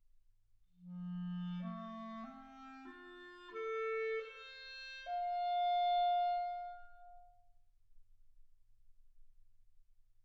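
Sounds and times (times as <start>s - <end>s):
clarinet: 0.8s - 7.4s.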